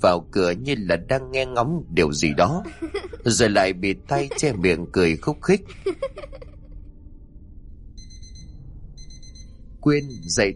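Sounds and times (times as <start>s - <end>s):
speech: 0.0s - 6.4s, 9.8s - 10.5s
laughter: 2.2s - 6.5s
alarm clock ringing: 8.0s - 10.5s.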